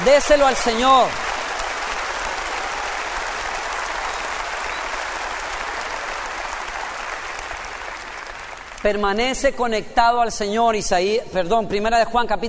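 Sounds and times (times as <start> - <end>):
speech: 0.0 - 1.2, 8.8 - 12.4
large crowd applause: 0.0 - 8.9.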